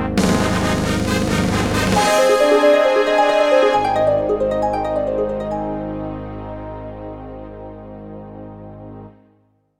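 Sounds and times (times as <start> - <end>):
fanfare: 0.2 - 7.0.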